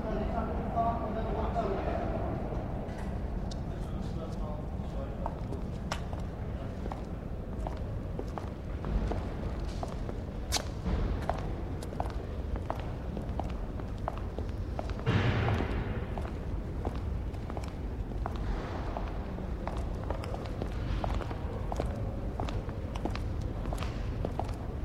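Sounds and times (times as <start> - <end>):
train station platform ambience: 0.0 - 24.8.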